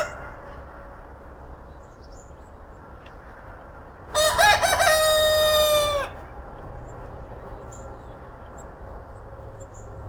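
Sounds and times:
rooster crowing: 0.0 - 0.7, 4.1 - 6.2.

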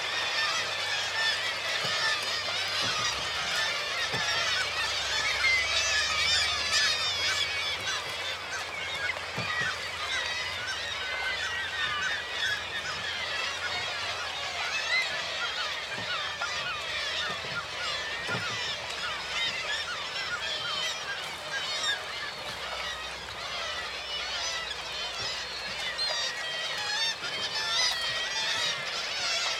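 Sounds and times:
flock of gulls calling: 0.0 - 29.5.

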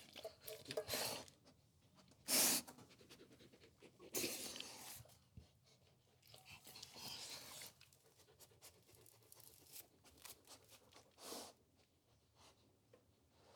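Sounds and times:
dog sniffing: 0.1 - 5.6, 6.3 - 11.6.

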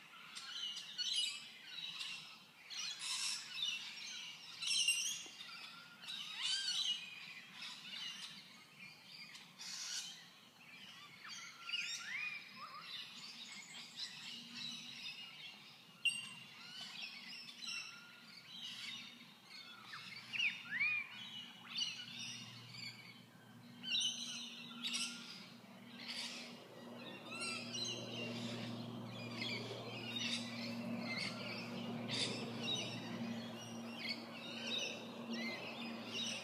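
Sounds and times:
birds chirping: 0.1 - 36.4
steady low electrical hum: 18.2 - 36.4.

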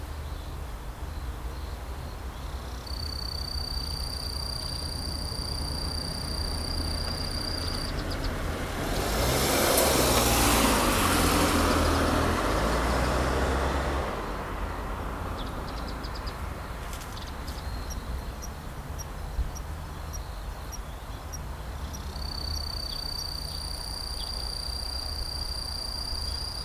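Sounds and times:
constant low rumble of traffic: 0.0 - 26.6
cricket chirping: 1.6 - 8.9, 15.4 - 26.6.

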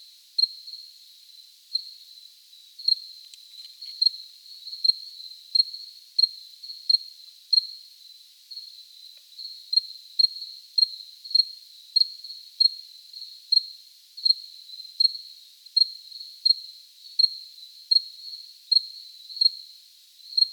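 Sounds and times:
cricket chirping: 0.4 - 20.5.

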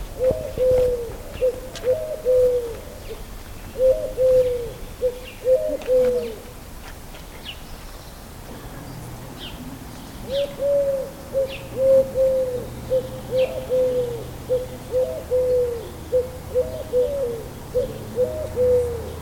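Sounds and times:
Eurasian collared dove cooing: 0.0 - 6.6, 10.2 - 19.2.

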